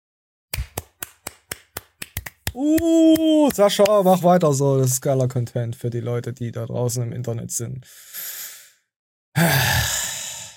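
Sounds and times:
clapping: 0.6s - 4.0s
speech: 2.6s - 8.4s, 9.4s - 9.8s.

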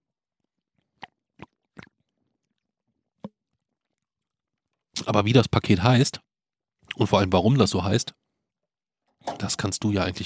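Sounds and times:
person gulping malt beer: 0.5s - 4.1s
speech: 5.1s - 6.3s, 7.0s - 8.2s, 9.2s - 10.2s.

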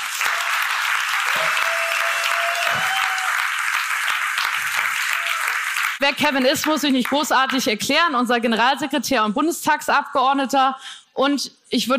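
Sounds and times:
audience applause: 0.0s - 6.9s
speech: 6.0s - 11.9s.

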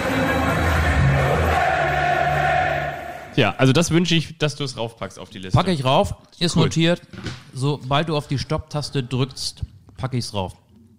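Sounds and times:
large stadium crowd clapping along: 0.0s - 2.6s
stadium crowd chanting voices: 0.0s - 3.4s
speech: 3.4s - 10.6s.

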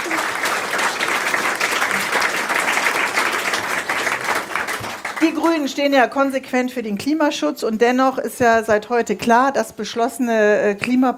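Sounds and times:
audience applause: 0.0s - 5.7s
speech: 5.3s - 11.1s.

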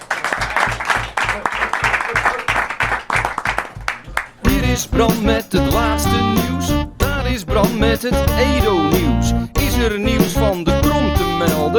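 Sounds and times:
audience applause: 0.0s - 4.4s
speech: 4.7s - 6.7s, 7.3s - 10.8s.

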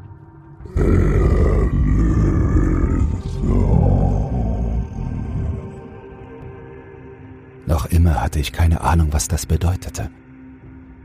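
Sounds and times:
metallic underwater creature voice calling: 0.7s - 5.9s
speech: 8.2s - 10.2s.

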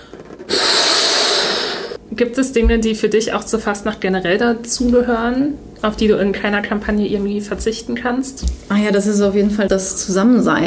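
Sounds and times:
large red balloon being blown up: 0.0s - 2.0s
speech: 2.1s - 10.6s.

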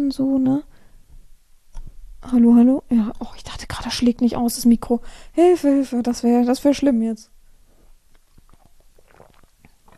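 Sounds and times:
speech: 0.0s - 0.7s, 2.2s - 7.3s
person sipping water between sentences: 8.1s - 9.9s.

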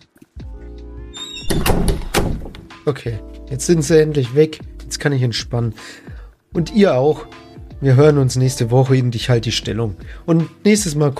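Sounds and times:
door hinges creaking: 1.2s - 2.7s
speech: 2.8s - 11.1s.

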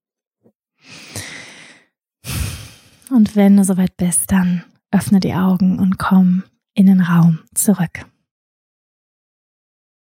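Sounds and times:
deep breathing during a guided meditation: 0.8s - 3.1s
speech: 3.1s - 8.1s.

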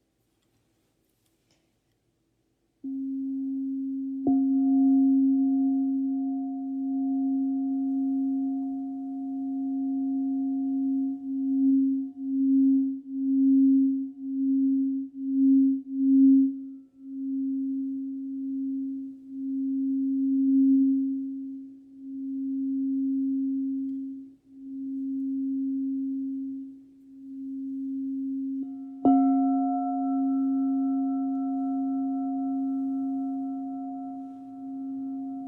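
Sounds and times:
crystal singing bowl with tiger's eye: 2.8s - 35.4s.

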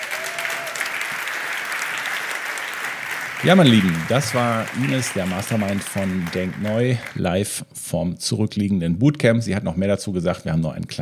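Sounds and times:
audience applause: 0.0s - 7.2s
speech: 3.4s - 10.9s.

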